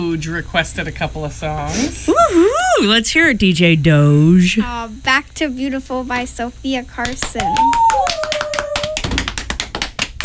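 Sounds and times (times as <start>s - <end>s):
speech: 0.0s - 7.9s
hand clapping: 7.0s - 10.2s.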